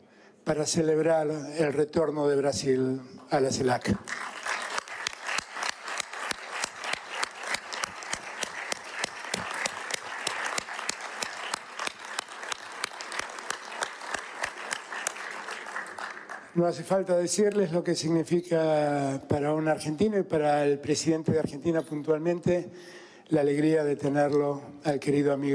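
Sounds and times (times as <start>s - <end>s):
speech: 0.5s - 4.3s, 16.6s - 25.5s
applause from a large crowd: 4.0s - 16.6s.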